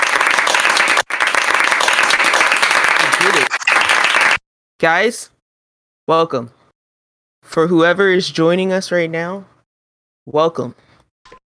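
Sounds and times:
crowd applause: 0.0s - 4.4s
speech: 4.8s - 5.4s, 6.1s - 6.6s, 7.5s - 9.5s, 10.3s - 11.4s.

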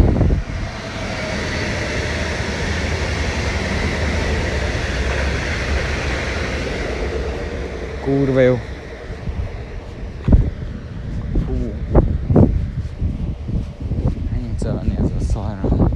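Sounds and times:
train rumbling past: 0.0s - 15.9s
speech: 8.1s - 8.7s.

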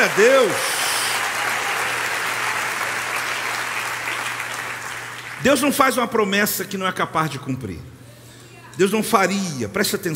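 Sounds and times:
speech: 0.0s - 0.8s, 5.4s - 8.0s, 8.8s - 10.1s
audience applause: 0.0s - 5.4s.

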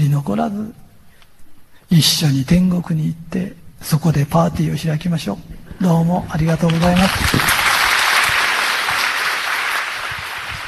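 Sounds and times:
speech: 0.1s - 0.8s, 1.9s - 7.5s
audience applause: 6.6s - 10.6s.

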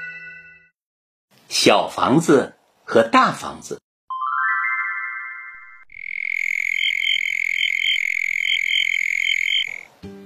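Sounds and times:
speech: 1.5s - 3.8s
bell cricket singing: 5.9s - 9.9s.

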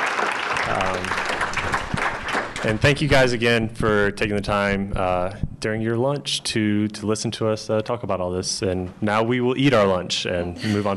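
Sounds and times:
audience applause: 0.0s - 3.2s
speech: 2.6s - 10.9s.

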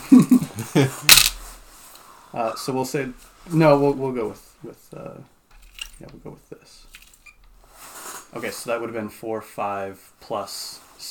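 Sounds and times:
speech: 0.8s - 1.1s, 2.4s - 5.3s, 6.0s - 7.0s, 8.3s - 11.0s
dice rattling and clattering across a table: 1.1s - 1.4s.

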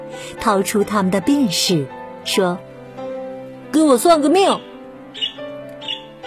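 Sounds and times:
speech: 0.1s - 2.7s, 3.8s - 4.7s
lovebird chirping: 5.1s - 6.2s.

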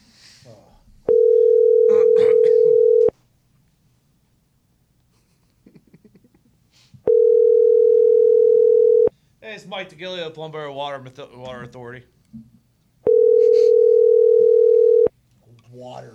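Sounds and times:
telephone ringing tone: 1.1s - 3.1s, 7.1s - 9.1s, 13.1s - 15.1s
speech: 9.7s - 12.5s, 15.8s - 16.1s.

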